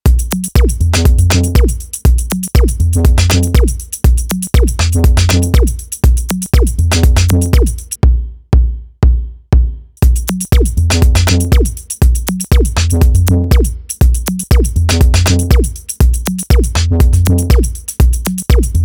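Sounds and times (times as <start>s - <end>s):
clonk unit acoustic drum machine: 0.0s - 18.8s.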